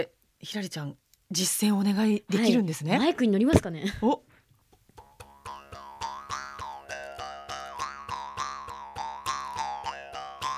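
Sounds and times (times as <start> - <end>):
speech: 0.0 - 4.3
mukkuri Ainu bamboo mouth harp twanged by pulling its string: 5.2 - 10.5.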